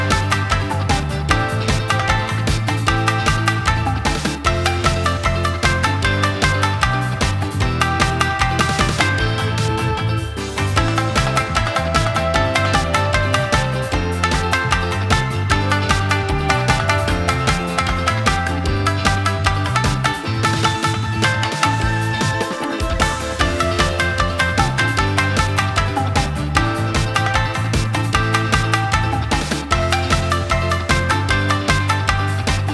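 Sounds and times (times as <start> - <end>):
upbeat shamisen background music: 0.0 - 32.7.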